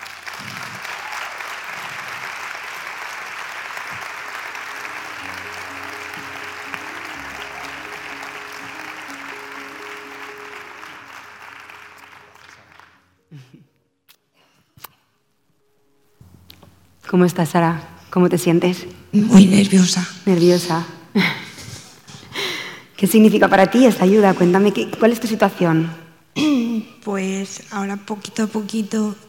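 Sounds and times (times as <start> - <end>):
audience applause welcoming someone on stage: 0.0 - 13.4
speech: 17.2 - 21.4, 23.0 - 26.5, 27.2 - 29.2.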